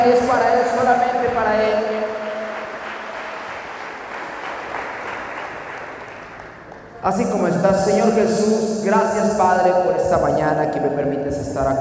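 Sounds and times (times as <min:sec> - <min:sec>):
audience clapping loudly: 0:00.0 - 0:07.6
speech: 0:07.0 - 0:11.7.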